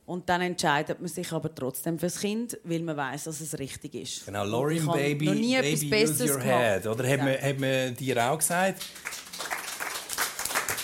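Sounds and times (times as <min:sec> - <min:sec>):
speech: 0:00.1 - 0:09.4
spontaneous applause: 0:08.4 - 0:10.8.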